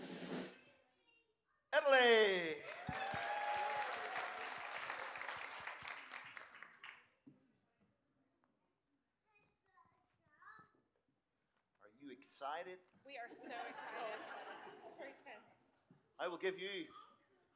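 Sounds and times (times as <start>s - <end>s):
audience applause: 1.8s - 7.0s
speech: 12.5s - 15.6s, 16.2s - 17.0s
laughter: 13.3s - 15.2s.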